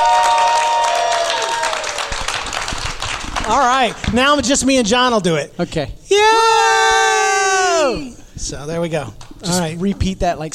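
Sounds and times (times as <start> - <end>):
studio audience cheering and applauding: 0.0 - 4.3
speech: 3.5 - 6.8, 7.9 - 10.5.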